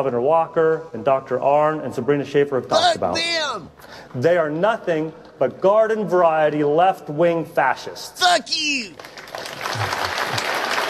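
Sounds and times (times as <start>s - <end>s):
speech: 0.0s - 9.2s
audience applauding: 8.9s - 10.8s.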